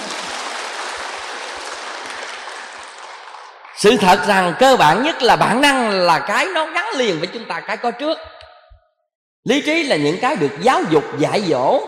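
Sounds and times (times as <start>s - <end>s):
audience applause: 0.0s - 4.0s
speech: 3.8s - 8.3s, 9.4s - 11.8s.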